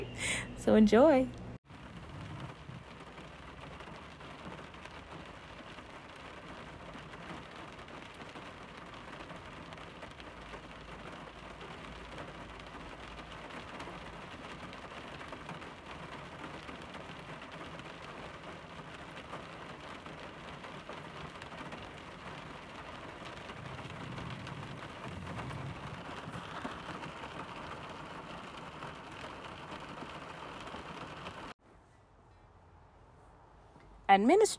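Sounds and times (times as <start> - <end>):
speech: 0.0 - 1.4, 34.2 - 34.5
rain drumming on a car roof and windows: 1.6 - 31.6
low rumble: 23.5 - 26.5.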